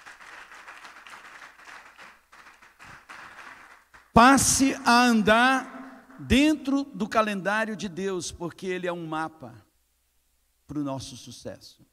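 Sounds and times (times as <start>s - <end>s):
audience applause: 0.0s - 4.1s
speech: 4.2s - 9.7s, 10.7s - 11.9s.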